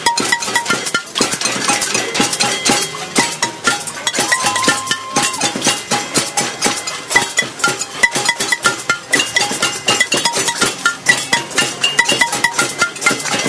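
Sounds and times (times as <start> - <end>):
pots being banged in Parc Jeanne-Mance: 0.0 - 13.4.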